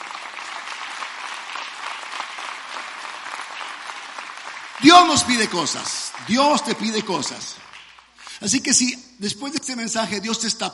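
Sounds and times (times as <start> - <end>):
audience applause: 0.0 - 8.4
speech: 4.8 - 7.7, 8.4 - 10.7.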